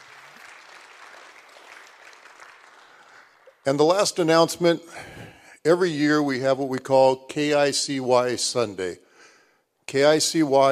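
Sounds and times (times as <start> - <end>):
audience applause: 0.0 - 3.7
speech: 3.6 - 9.0, 9.9 - 10.6.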